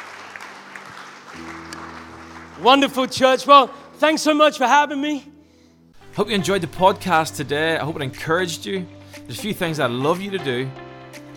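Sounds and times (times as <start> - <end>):
audience applause: 0.0 - 3.5
speech: 2.6 - 5.3, 6.2 - 10.8.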